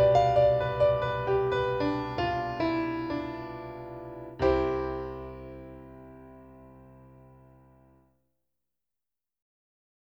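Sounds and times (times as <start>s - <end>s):
baroque prelude: 0.0s - 7.8s.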